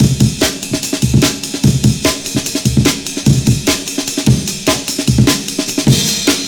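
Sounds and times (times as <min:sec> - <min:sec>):
breakcore drum breaks: 0:00.0 - 0:06.4.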